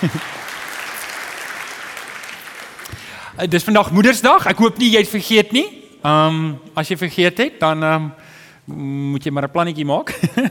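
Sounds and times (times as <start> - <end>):
laughter: 0.0 - 0.4
speech: 0.0 - 0.4, 3.4 - 10.4
audience applause for the band: 0.0 - 3.0.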